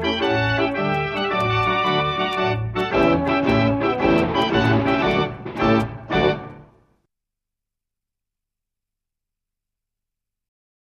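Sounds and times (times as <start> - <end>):
Dutch street barrel organ playing: 0.0 - 6.7.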